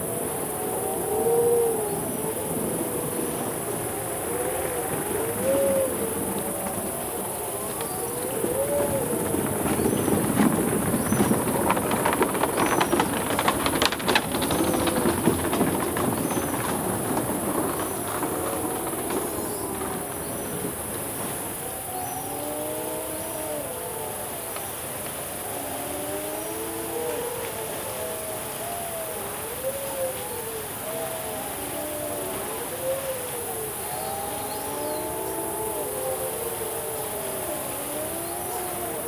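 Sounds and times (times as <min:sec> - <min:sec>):
high insect whine on Îlot Maître off Nouméa: 0:00.0 - 0:39.0.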